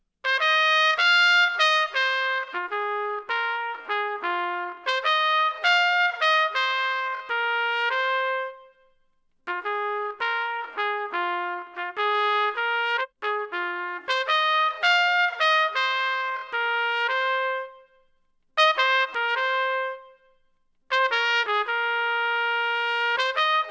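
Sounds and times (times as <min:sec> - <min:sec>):
trumpet: 0:00.2 - 0:23.6.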